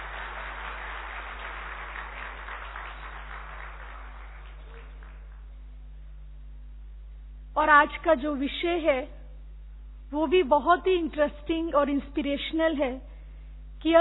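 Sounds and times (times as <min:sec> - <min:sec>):
audience applause welcoming a speaker: 0:00.0 - 0:05.6
speech: 0:07.6 - 0:09.2, 0:10.1 - 0:13.1, 0:13.8 - 0:13.9.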